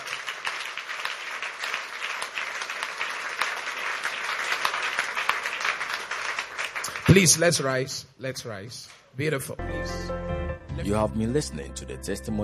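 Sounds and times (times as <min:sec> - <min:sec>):
audience clapping: 0:00.0 - 0:08.0
speech: 0:07.1 - 0:12.4.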